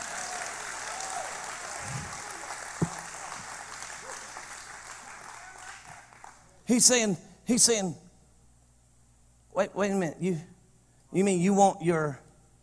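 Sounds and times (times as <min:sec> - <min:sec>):
audience hand clapping: 0:00.0 - 0:06.4
speech: 0:06.7 - 0:08.0, 0:09.6 - 0:10.5, 0:11.1 - 0:12.2.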